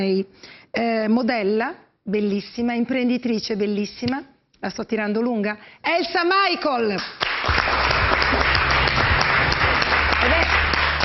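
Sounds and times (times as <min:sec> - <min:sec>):
speech: 0:00.0 - 0:07.6
audience applause: 0:07.2 - 0:11.0.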